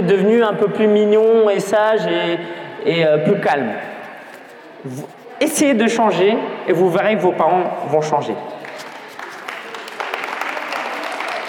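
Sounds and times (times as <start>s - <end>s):
speech: 0.0s - 4.0s, 4.8s - 8.6s
crowd of parents applauding: 8.6s - 11.4s.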